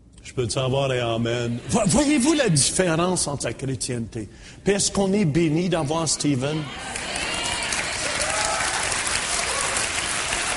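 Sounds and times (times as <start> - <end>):
speech: 0.3 - 7.2
audience applause: 6.8 - 10.5.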